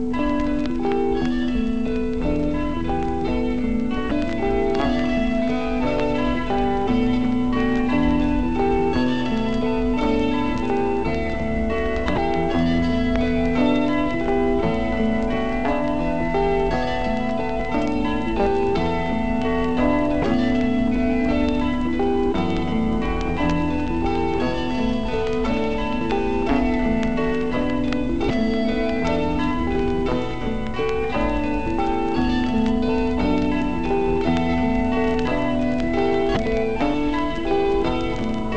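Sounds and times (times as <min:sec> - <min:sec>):
tubular bells: 0:00.1 - 0:38.5.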